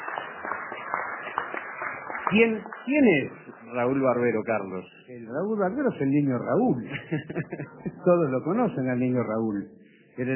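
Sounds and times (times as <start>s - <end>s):
audience applause for a veteran of Uruguayan radio: 0.0s - 4.6s
speech: 2.3s - 10.3s
laughter: 6.7s - 8.6s.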